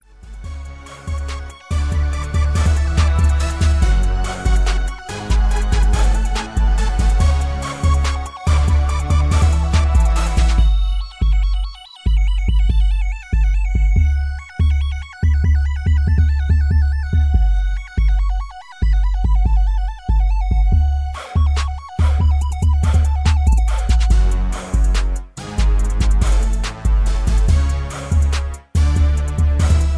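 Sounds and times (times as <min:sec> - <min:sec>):
music beat: 0:00.0 - 0:29.9.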